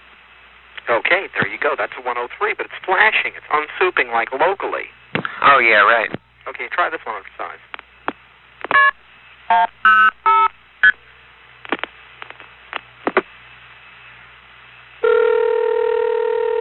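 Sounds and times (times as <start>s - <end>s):
speech: 1.0s - 7.7s, 9.5s - 10.1s
steady telephone tone: 15.0s - 16.6s.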